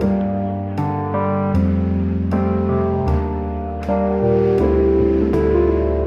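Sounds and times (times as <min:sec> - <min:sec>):
sad keys loop: 0:00.0 - 0:06.0.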